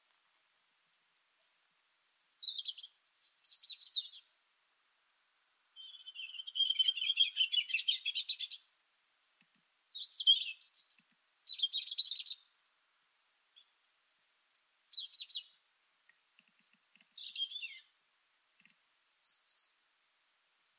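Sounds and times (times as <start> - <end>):
European robin singing: 1.9 - 4.3, 5.8 - 8.7, 9.9 - 12.6, 13.6 - 15.6, 16.3 - 17.9, 18.6 - 19.8.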